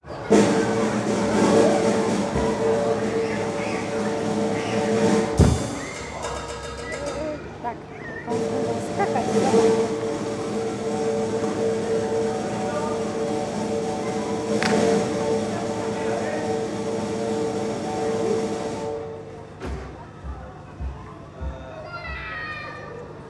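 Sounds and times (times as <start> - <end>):
circus snare drum roll: 0.2 - 7.4, 8.3 - 19.0.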